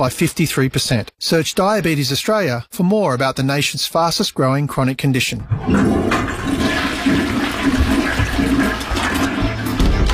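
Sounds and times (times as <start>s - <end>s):
speech: 0.0s - 6.7s
toilet flushing: 5.4s - 10.1s.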